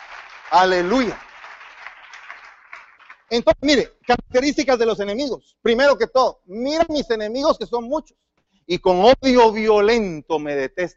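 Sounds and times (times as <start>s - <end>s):
audience applause: 0.0s - 3.4s
speech: 0.5s - 1.2s, 3.3s - 10.9s.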